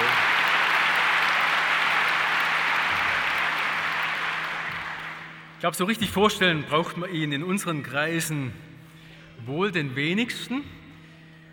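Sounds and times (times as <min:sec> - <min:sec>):
audience clapping: 0:00.0 - 0:05.5
speech: 0:05.6 - 0:08.7, 0:09.4 - 0:10.8.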